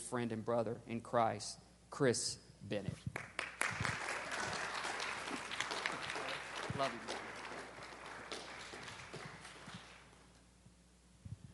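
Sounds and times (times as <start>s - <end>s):
speech: 0.1s - 4.0s, 6.8s - 7.2s
audience applause welcoming a speaker in a church: 3.2s - 10.4s.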